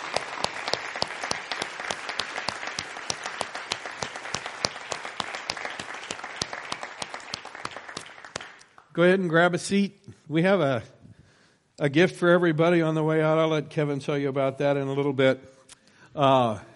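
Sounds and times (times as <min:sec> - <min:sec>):
crowd applause: 0:00.0 - 0:08.8
speech: 0:09.0 - 0:11.0, 0:11.8 - 0:15.6, 0:16.2 - 0:16.7.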